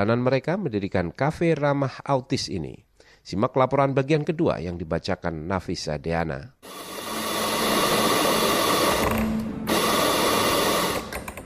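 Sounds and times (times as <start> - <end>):
speech: 0.0 - 6.9
coffee grinder whirring: 6.6 - 11.4.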